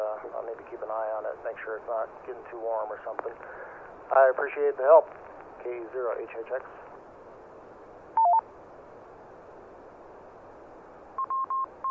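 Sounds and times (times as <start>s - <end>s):
radio hiss: 0.0s - 7.0s
speech: 0.3s - 6.8s
radio repeater courtesy two-pitch chirp: 8.2s - 8.4s
radio repeater short beeps: 8.2s - 8.4s, 11.2s - 11.8s.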